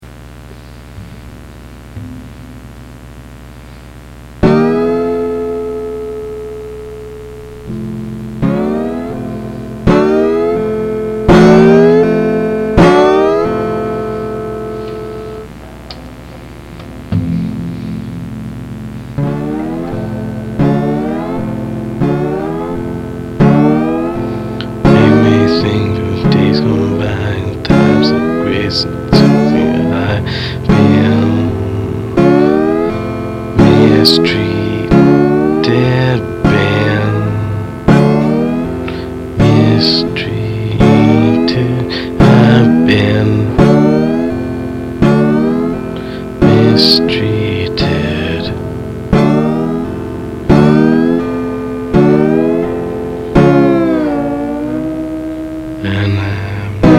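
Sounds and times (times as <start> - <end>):
late blues music: 0.1 - 56.9.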